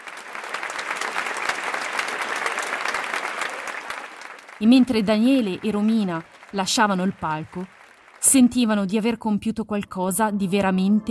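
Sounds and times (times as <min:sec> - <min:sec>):
long audience applause: 0:00.0 - 0:08.8
speech: 0:04.6 - 0:11.0.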